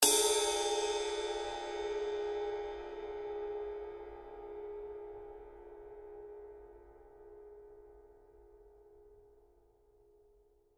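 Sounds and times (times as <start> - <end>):
suspended cymbal: 0.0 - 6.5.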